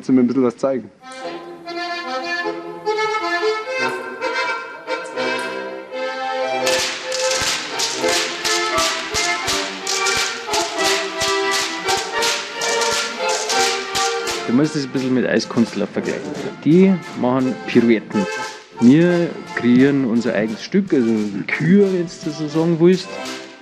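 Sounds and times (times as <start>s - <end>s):
speech: 0.0s - 1.8s, 14.5s - 23.4s
music: 1.0s - 23.6s
whips cracking in Goaßlschnalzen: 6.6s - 15.8s, 18.2s - 19.2s, 19.8s - 23.6s.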